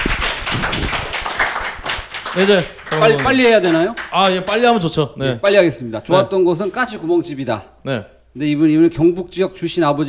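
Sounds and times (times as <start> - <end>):
applause, hands clapping: 0.0 - 4.7
speech: 2.4 - 10.0.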